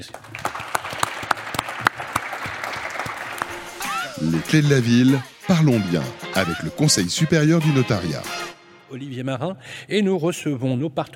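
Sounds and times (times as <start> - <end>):
speech: 0.0 - 0.4, 4.2 - 11.1
audience applause: 0.0 - 4.4.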